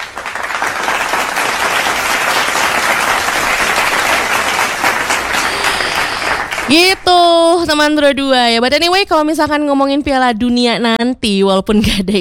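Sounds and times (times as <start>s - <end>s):
applause: 0.0s - 7.3s
speech: 6.7s - 12.1s.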